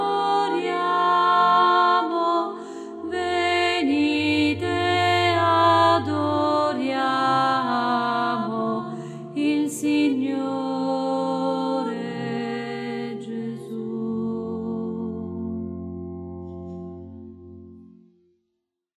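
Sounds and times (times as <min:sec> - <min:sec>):
contralto voices singing: 0:00.0 - 0:15.8.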